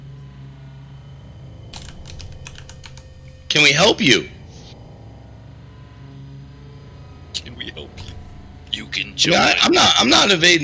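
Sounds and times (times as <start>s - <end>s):
low hum: 0.0s - 9.3s
computer keyboard keystroke clicks typing a name: 1.8s - 3.1s
speech: 3.5s - 4.4s, 9.2s - 10.6s.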